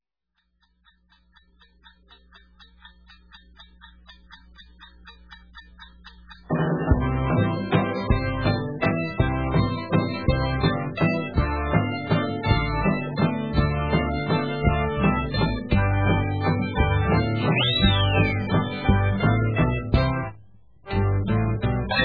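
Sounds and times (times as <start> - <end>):
waltz music: 6.5 - 20.3, 20.9 - 22.0.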